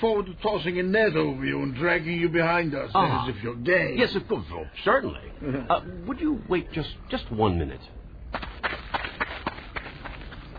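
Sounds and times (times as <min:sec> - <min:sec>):
speech: 0:00.0 - 0:08.8
running footsteps of a fleeing man: 0:08.3 - 0:10.5.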